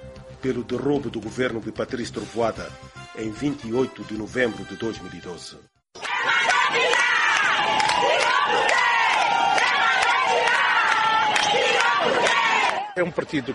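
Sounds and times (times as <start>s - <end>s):
speech: 0.4s - 6.9s, 13.0s - 13.5s
large crowd of supporters shouting and cheering outdoors in the streets: 6.0s - 13.5s.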